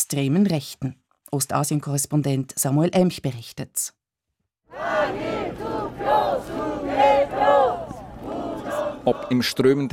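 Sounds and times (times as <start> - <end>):
speech: 0.1 - 4.0, 9.0 - 9.9
protesters chanting: 4.7 - 9.6.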